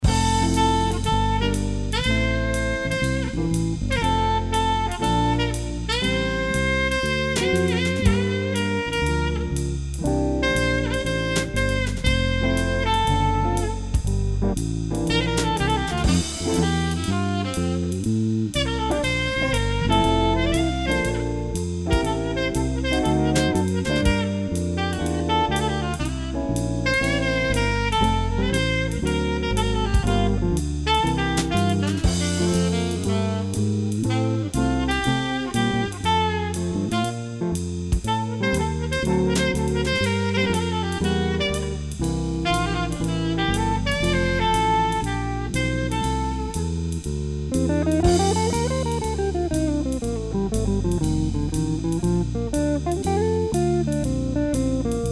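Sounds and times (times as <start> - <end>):
musical trio: 0.0 - 55.0.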